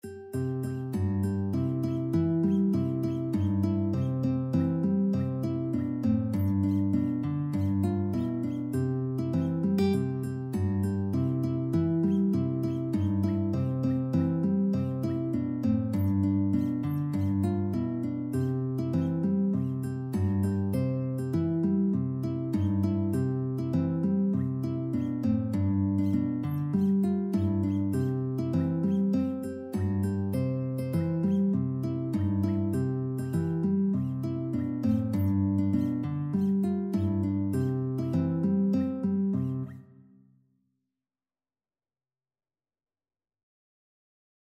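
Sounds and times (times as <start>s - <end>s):
guitar: 0.0s - 40.2s.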